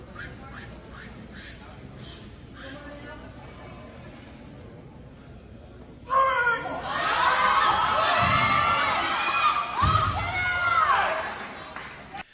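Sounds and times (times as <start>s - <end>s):
crowd of women cheering: 6.1s - 11.6s.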